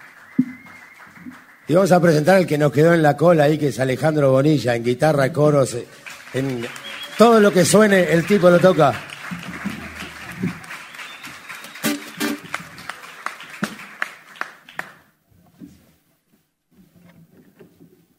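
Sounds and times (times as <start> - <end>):
audience applause: 0.0 - 2.1, 5.8 - 15.1
speech: 1.7 - 9.1.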